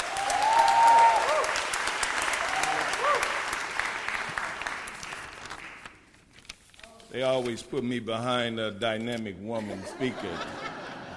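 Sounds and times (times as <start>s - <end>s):
audience applause welcoming a speaker: 0.0s - 6.0s
speech: 7.2s - 10.7s
laughter: 9.6s - 11.1s.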